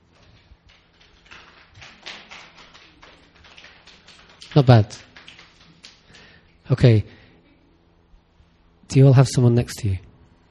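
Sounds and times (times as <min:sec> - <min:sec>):
crowd attempting one-handed clapping: 0:00.2 - 0:06.3
speech: 0:04.5 - 0:05.1, 0:06.7 - 0:07.2, 0:08.9 - 0:10.1.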